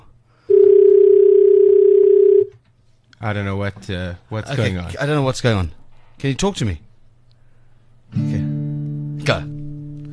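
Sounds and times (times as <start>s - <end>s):
telephone dial tone after a button is pushed: 0.5s - 2.5s
speech: 3.2s - 6.9s, 9.3s - 9.5s.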